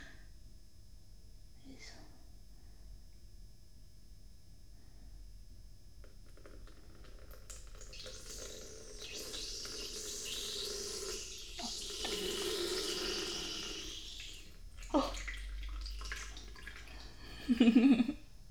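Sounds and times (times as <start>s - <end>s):
washbasin sounds indoors: 7.2s - 18.1s.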